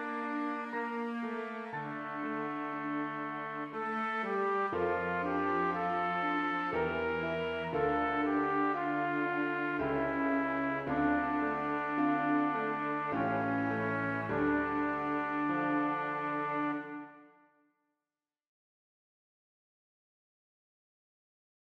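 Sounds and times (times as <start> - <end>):
cello: 0.0 - 17.1
piano: 0.0 - 17.4
trumpet: 0.0 - 17.6.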